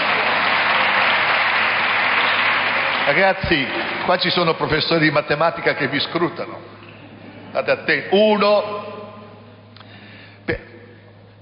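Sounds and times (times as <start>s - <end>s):
applause: 0.0s - 4.8s
speech: 3.1s - 6.8s, 7.6s - 8.9s.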